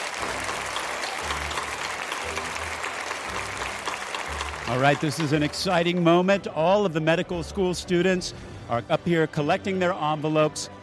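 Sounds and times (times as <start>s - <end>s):
audience applause: 0.0s - 6.3s
speech: 4.7s - 10.8s.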